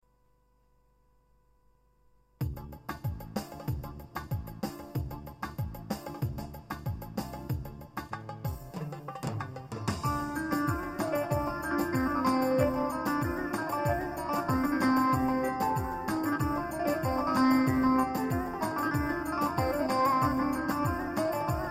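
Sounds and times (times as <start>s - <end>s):
Korg Pa 55 electronic baglama: 5.0s - 21.6s.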